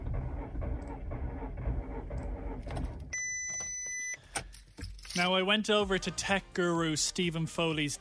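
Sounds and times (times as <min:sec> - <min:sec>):
Volkswagen Golf engine rumbling: 0:00.0 - 0:03.2
speech: 0:05.2 - 0:08.0.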